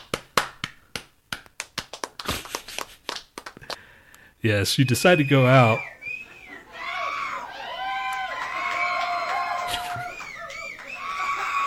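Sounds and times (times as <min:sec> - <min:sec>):
small group applause: 0:00.0 - 0:03.8, 0:06.5 - 0:11.6
speech: 0:04.4 - 0:05.9.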